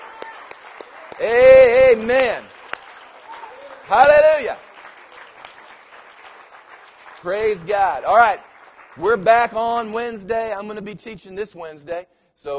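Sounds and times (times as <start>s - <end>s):
audience applause: 0.0s - 9.8s
speech: 1.2s - 2.5s, 3.9s - 4.6s, 7.2s - 12.5s.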